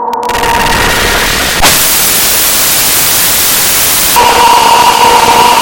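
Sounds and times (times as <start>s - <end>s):
death sound effect variations: 0.2s - 5.6s.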